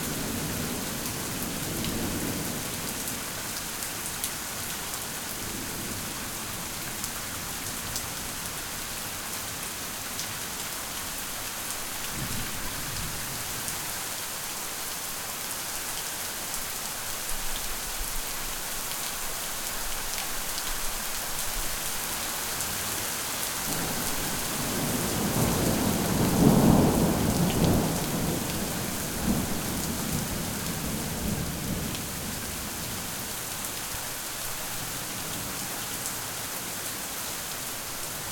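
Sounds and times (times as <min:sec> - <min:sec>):
rain: 0:00.0 - 0:38.3.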